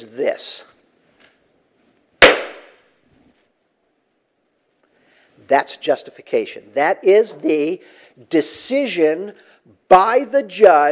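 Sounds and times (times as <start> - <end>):
speech: 0.0 - 0.7, 5.5 - 10.9
hammer striking a wooden block: 2.2 - 2.7.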